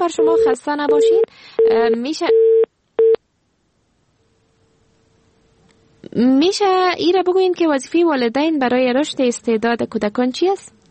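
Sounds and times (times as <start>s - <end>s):
speech: 0.0s - 2.4s, 6.1s - 10.8s
telephone line tones after a dropped call to a radio show: 0.2s - 3.2s.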